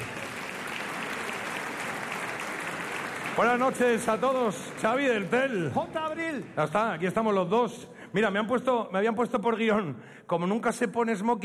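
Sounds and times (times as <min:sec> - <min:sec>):
audience applause: 0:00.0 - 0:06.4
speech: 0:03.4 - 0:11.4.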